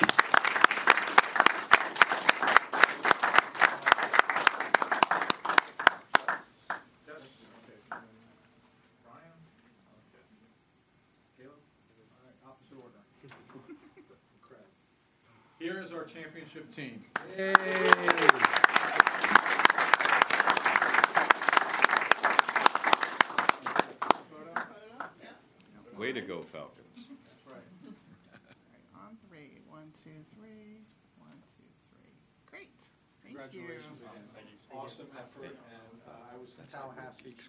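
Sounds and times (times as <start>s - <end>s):
audience applause: 0.0s - 6.8s, 17.2s - 24.7s
speech: 16.1s - 18.8s, 26.2s - 26.8s, 33.4s - 35.8s, 36.4s - 37.4s.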